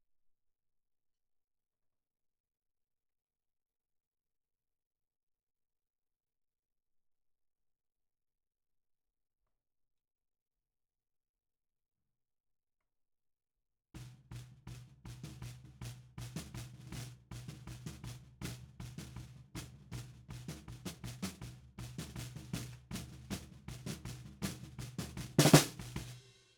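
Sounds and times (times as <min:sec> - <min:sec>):
snare drum bottom: 0:14.0 - 0:26.5.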